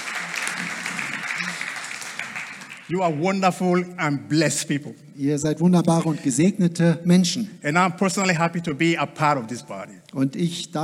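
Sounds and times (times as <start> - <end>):
congregation clapping in a church service: 0.0 - 3.9
speech: 2.9 - 10.8.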